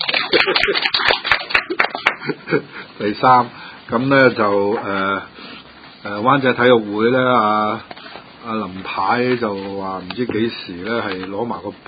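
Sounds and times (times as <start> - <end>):
group of people clapping in celebration after a third-place race finish: 0.0 - 2.6
speech: 0.3 - 1.2, 2.3 - 11.8.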